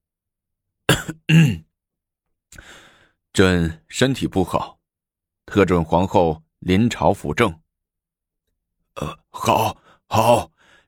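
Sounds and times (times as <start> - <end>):
cough: 0.9 - 1.7
speech: 1.1 - 1.6, 3.4 - 4.8, 5.5 - 7.6, 9.0 - 10.5.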